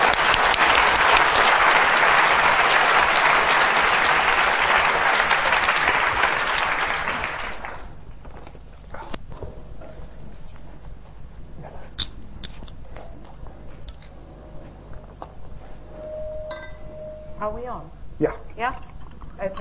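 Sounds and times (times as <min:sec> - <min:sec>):
audience applause welcoming a speaker at a public meeting: 0:00.0 - 0:08.0.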